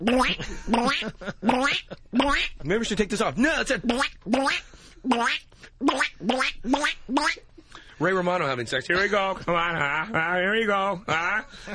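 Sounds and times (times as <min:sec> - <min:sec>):
person imitating duck quacks: 0:00.0 - 0:02.6, 0:03.8 - 0:07.5
speech: 0:00.1 - 0:11.7.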